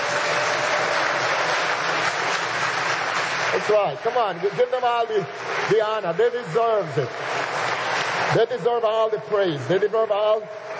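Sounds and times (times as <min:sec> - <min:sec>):
congregation applauding during a church service: 0:00.0 - 0:10.7
speech: 0:03.6 - 0:07.4, 0:08.3 - 0:10.6.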